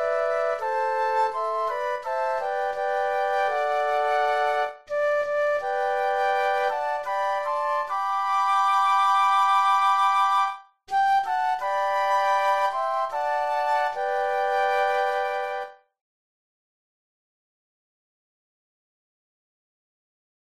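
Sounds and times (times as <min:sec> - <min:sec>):
flute trio playing: 0:00.0 - 0:15.8.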